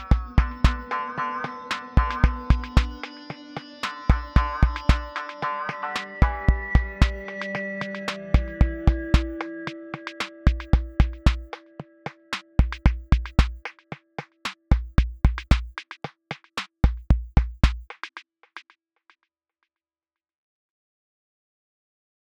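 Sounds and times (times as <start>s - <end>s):
koto funk music: 0.0s - 17.6s.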